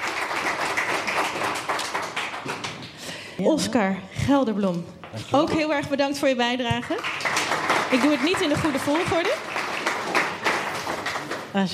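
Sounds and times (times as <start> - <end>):
audience applause: 0.0 - 3.0, 6.9 - 11.7
speech: 3.4 - 7.2, 7.9 - 9.5, 11.6 - 11.7.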